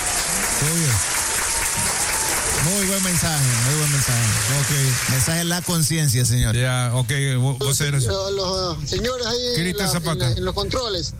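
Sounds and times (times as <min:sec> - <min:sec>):
applause: 0:00.0 - 0:05.9
speech: 0:02.7 - 0:11.1.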